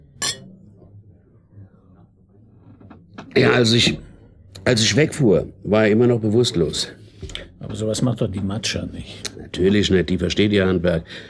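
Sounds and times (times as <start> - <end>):
beer glasses clinking in a toast: 0.2 - 0.6
speech: 3.4 - 4.1, 4.7 - 7.0, 7.6 - 11.2.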